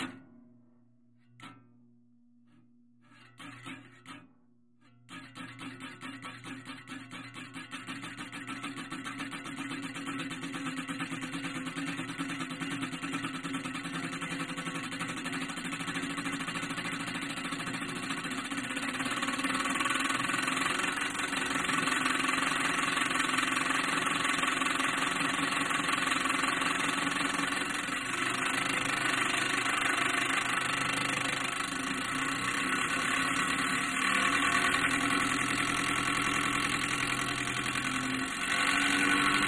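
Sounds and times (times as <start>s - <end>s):
small fan blade running at variable speed: 5.2s - 39.4s.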